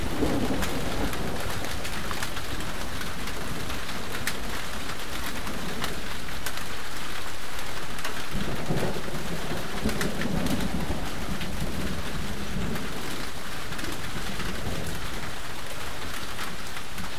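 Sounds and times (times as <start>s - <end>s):
thunder: 0.0s - 3.9s, 8.3s - 15.3s
rain: 0.0s - 17.1s.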